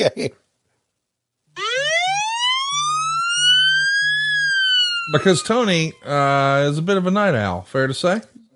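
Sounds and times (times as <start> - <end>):
speech: 0.0 - 0.4, 5.1 - 8.3
police siren ringtone: 1.6 - 7.1.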